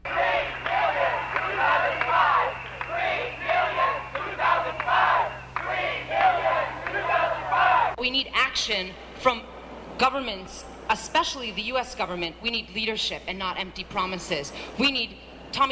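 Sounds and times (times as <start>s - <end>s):
protesters' commotion and shouting at a rally in Barcelona: 0.0s - 8.0s
speech: 8.6s - 15.6s.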